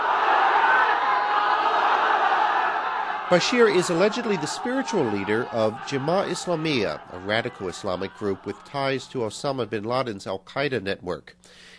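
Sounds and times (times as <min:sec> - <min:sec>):
small group of supporters shouting Allahu Akbar together: 0:00.0 - 0:09.1
speech: 0:03.3 - 0:11.7.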